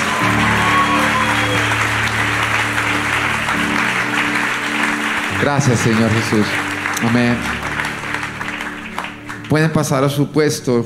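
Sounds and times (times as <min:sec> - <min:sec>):
crowd applause: 0:00.0 - 0:10.2
speech: 0:05.4 - 0:07.6, 0:09.5 - 0:10.8.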